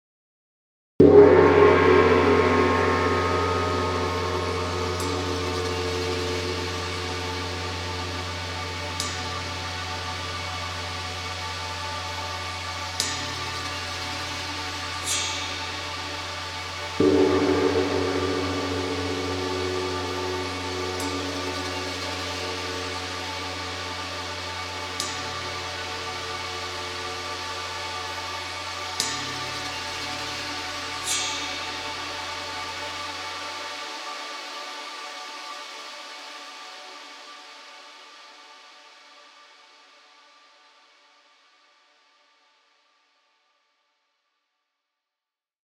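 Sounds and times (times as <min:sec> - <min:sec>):
gong: 0:01.0 - 0:36.2.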